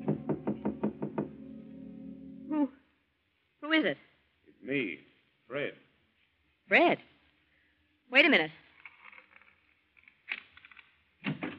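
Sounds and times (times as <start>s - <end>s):
knocking on an apartment door: 0.0s - 1.4s
speech: 3.8s - 4.1s, 4.7s - 5.8s, 6.7s - 7.1s, 8.1s - 8.6s.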